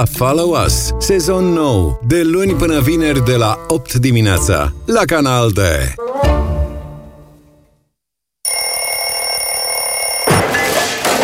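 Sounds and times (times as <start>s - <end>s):
speech: 0.0s - 6.4s
alarm clock ringing: 8.5s - 10.4s.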